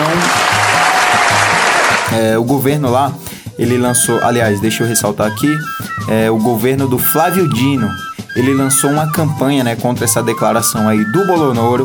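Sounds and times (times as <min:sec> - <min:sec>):
round of applause: 0:00.0 - 0:02.1
speech: 0:02.2 - 0:11.8.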